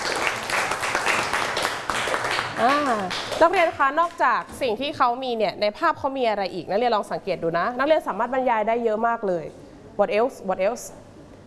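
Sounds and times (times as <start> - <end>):
classroom clapping for a student: 0.0 - 4.2
speech: 2.6 - 11.0.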